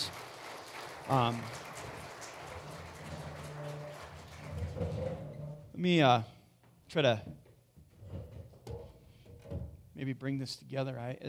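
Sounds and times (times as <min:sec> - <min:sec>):
audience applause: 0:00.0 - 0:05.2
speech: 0:01.1 - 0:01.6, 0:05.8 - 0:06.3, 0:06.9 - 0:07.4, 0:10.0 - 0:11.2.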